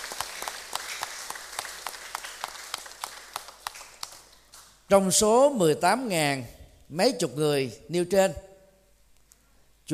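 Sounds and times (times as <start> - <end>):
audience applause: 0.0 - 4.4
speech: 4.9 - 8.5.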